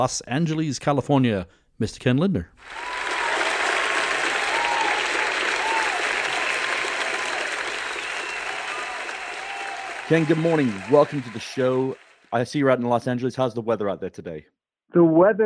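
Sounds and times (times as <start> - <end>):
speech: 0.0 - 2.9, 10.1 - 15.4
crowd noise: 2.6 - 12.4
audience applause welcoming a guest: 2.6 - 12.8.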